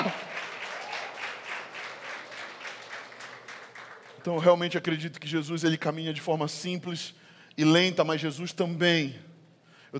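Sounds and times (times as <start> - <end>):
crowd applauding: 0.0 - 4.8
speech: 4.2 - 9.3.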